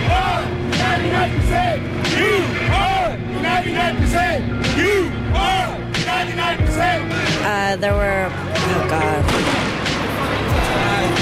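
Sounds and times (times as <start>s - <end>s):
dense crowd noise at a protest: 0.0s - 11.1s
speech: 6.2s - 9.6s
flashbang stun grenade detonating at a protest: 9.3s - 9.9s.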